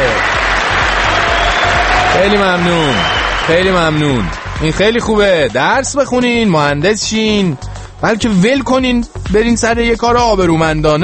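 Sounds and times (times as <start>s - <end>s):
steady clapping for someone: 0.0s - 5.2s
speech: 2.2s - 11.0s.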